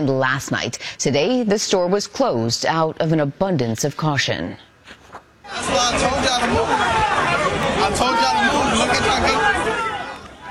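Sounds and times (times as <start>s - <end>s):
speech: 0.0s - 4.7s, 5.6s - 9.7s
chaotic crowd chatter in line: 5.5s - 10.4s.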